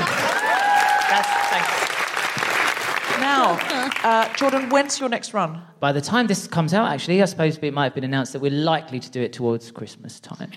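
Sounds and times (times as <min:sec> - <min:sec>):
audience applause: 0:00.0 - 0:05.0
speech: 0:03.4 - 0:10.5.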